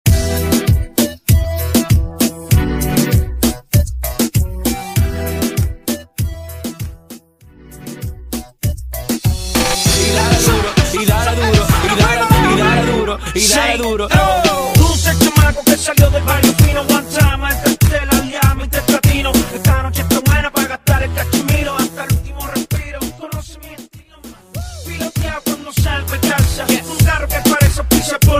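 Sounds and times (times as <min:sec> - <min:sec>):
98 bpm intro outro music: 0:00.1 - 0:28.3.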